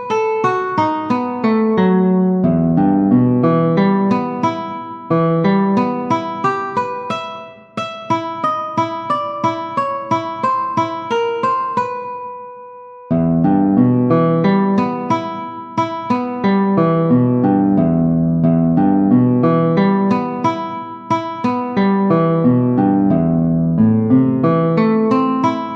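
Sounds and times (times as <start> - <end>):
gypsy guitar at 90 bpm: 0.0 - 12.2, 13.1 - 25.7.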